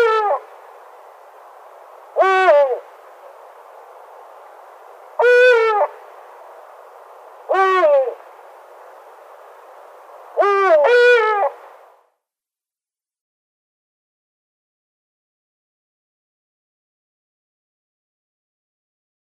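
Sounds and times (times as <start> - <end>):
Eurasian eagle-owl pair display calls: 0.0 - 0.5, 2.2 - 2.9, 5.2 - 6.0, 7.5 - 8.2, 10.4 - 11.6.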